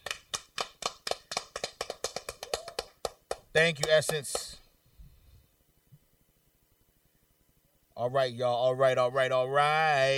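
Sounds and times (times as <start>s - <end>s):
a few hands clapping: 0.0s - 4.6s
speech: 3.6s - 4.6s, 8.0s - 10.1s.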